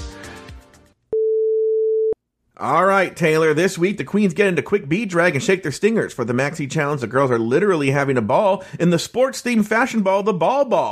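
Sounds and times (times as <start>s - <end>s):
beep tone: 1.2s - 2.2s
speech: 2.6s - 10.9s.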